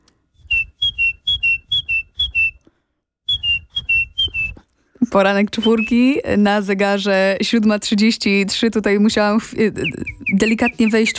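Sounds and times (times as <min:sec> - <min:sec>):
person whistling in imitation of birdsong: 0:00.3 - 0:02.7, 0:03.3 - 0:04.6, 0:05.6 - 0:06.1, 0:09.8 - 0:11.1
speech: 0:05.1 - 0:11.1.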